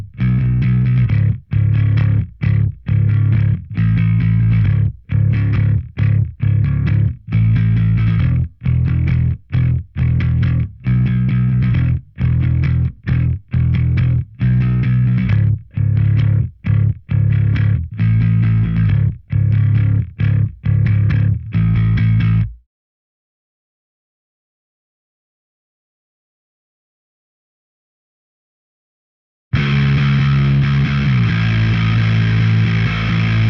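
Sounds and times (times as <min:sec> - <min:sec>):
bass: 0:00.0 - 0:22.6, 0:29.6 - 0:33.4.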